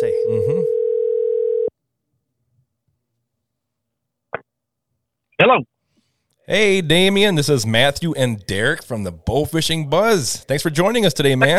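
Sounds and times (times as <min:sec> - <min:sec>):
telephone dial tone placing a call: 0:00.6 - 0:01.7
speech: 0:05.5 - 0:05.7, 0:06.5 - 0:11.5.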